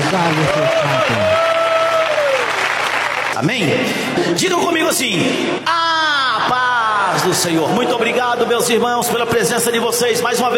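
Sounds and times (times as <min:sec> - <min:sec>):
audience clapping: 0:00.0 - 0:03.8
speech: 0:00.1 - 0:01.5, 0:03.4 - 0:05.8, 0:06.4 - 0:10.5.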